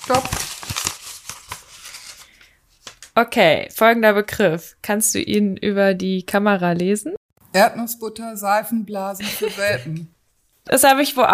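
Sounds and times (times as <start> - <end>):
paper slips rustling as a hand rummages inside an envelope: 0.0 - 3.2
speech: 0.1 - 0.4, 3.2 - 11.3
laughter: 9.2 - 10.1.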